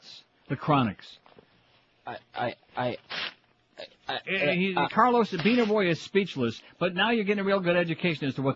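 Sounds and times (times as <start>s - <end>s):
speech: 0.5s - 1.2s, 2.1s - 3.2s, 4.1s - 8.5s
faxed paper pages being torn up: 3.0s - 3.4s, 5.2s - 5.9s.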